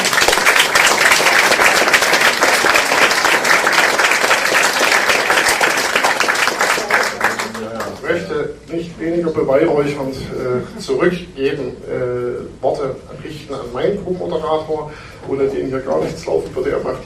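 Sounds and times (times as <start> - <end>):
audience applause: 0.0 - 8.1
speech: 9.0 - 17.0.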